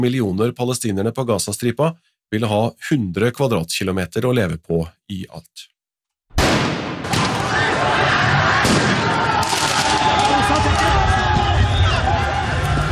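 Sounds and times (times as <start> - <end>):
speech: 0.0 - 5.7
sharp bangs: 6.4 - 11.0
crowd din of football rioting in France after PSG won the Champions League: 7.2 - 12.9.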